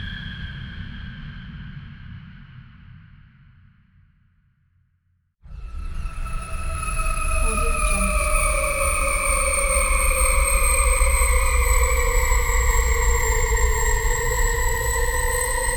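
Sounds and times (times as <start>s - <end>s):
sci-fi UFO scanner low rumbling drone: 5.5s - 15.7s.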